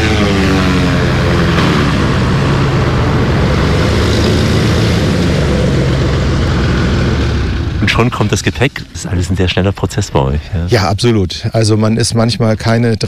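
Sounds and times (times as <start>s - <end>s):
propeller plane landing with propellers spinning fast: 0.0s - 9.2s
speech: 8.0s - 13.0s.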